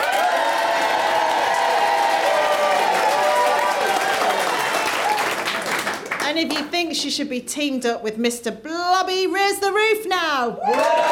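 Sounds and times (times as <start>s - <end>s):
studio audience excited voices cheering: 0.0s - 5.4s, 10.6s - 11.0s
studio audience clapping: 0.0s - 6.8s, 10.6s - 11.0s
speech: 7.0s - 11.0s.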